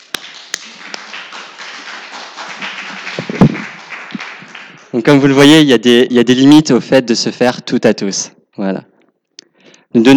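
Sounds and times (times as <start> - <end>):
audience applause: 0.0 - 5.4
speech: 4.9 - 8.9, 9.9 - 10.1.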